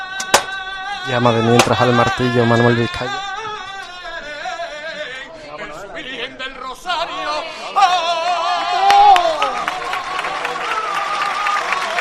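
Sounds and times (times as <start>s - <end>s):
crowd chatter: 0.0s - 12.0s
person singing a saeta during a procession: 0.0s - 12.0s
speech: 1.0s - 3.3s
street crowd applause and cheering at a procession: 7.8s - 12.0s.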